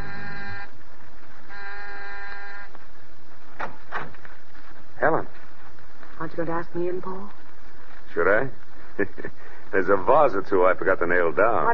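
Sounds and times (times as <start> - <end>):
electric doorbell buzzing: 0.0 - 0.7, 1.5 - 2.7
speech: 6.4 - 7.4, 8.2 - 11.7.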